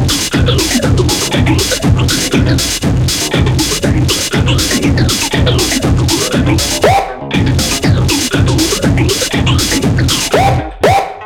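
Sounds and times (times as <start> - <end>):
distorted synth drum beat loop: 0.0 - 11.2.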